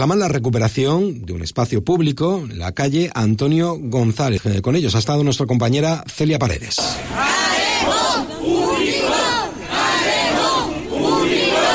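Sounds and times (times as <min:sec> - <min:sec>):
speech: 0:00.0 - 0:08.3
neighbours chanting in unison outside Antequera town hall: 0:06.8 - 0:11.7.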